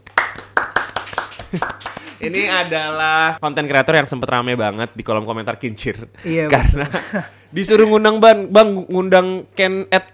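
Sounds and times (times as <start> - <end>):
hand clapping: 0.0 - 2.9
speech: 1.5 - 10.1
laughter: 6.6 - 7.4.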